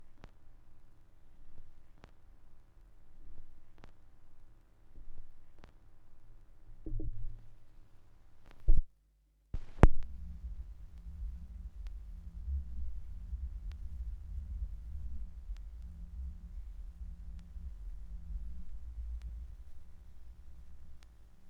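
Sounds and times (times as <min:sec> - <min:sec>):
vinyl record noise: 0:09.6 - 0:21.4.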